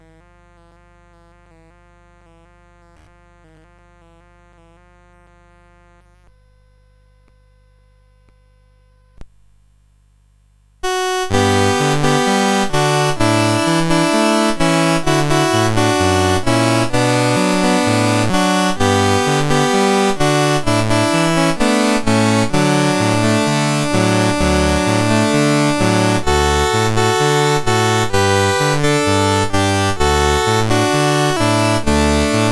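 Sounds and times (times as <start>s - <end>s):
CSG 8580 sound chip: 10.8s - 32.5s.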